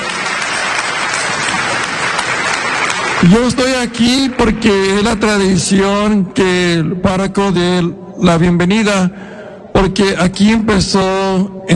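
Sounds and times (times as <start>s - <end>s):
parishioners applauding: 0.0s - 5.9s
speech: 3.2s - 11.7s.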